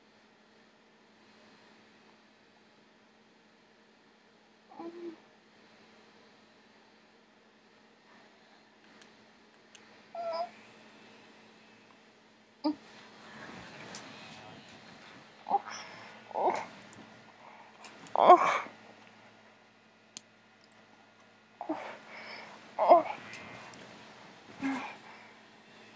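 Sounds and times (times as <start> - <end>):
whimpering: 4.7 - 5.2, 10.2 - 10.6, 15.5 - 16.7, 21.6 - 23.7, 24.6 - 25.2
girl gagging: 24.6 - 25.0.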